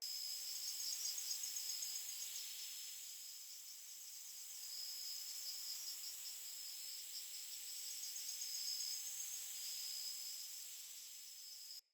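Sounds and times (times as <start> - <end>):
insects outdoors: 0.0 - 11.9.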